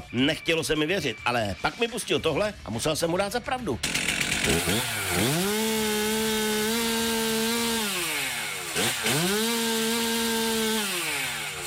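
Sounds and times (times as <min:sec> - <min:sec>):
speech: 0:00.1 - 0:05.4
chainsaw cutting wood: 0:03.8 - 0:11.6.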